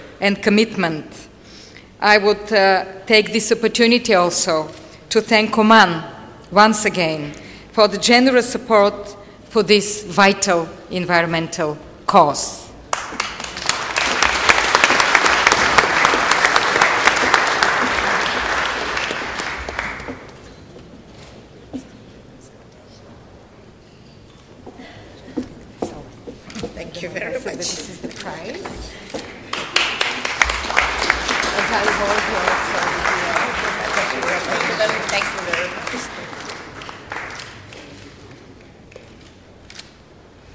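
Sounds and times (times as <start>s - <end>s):
speech: 0.2s - 1.3s, 2.0s - 13.3s
crowd applauding: 12.9s - 20.4s, 29.2s - 38.3s.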